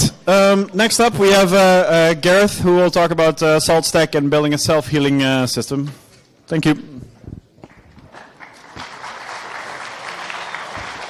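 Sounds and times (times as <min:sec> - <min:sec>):
speech: 0:00.3 - 0:07.0
audience applause: 0:08.1 - 0:11.0.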